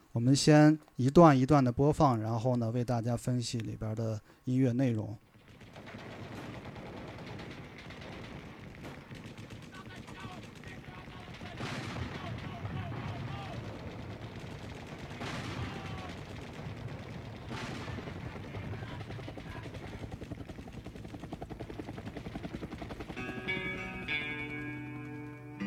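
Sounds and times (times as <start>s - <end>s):
speech: 0.2s - 6.0s
sampled rattling gunfire: 5.3s - 25.5s
sampled heavy artillery blasts: 5.4s - 20.8s.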